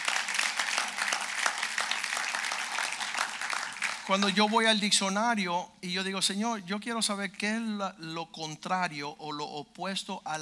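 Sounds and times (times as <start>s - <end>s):
audience applause: 0.0s - 4.6s
speech: 4.1s - 10.4s.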